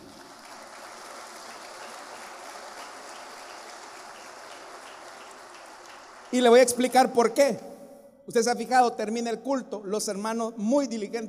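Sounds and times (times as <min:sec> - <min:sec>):
audience applauding: 0:00.0 - 0:07.0
speech: 0:06.3 - 0:07.7, 0:08.3 - 0:11.2.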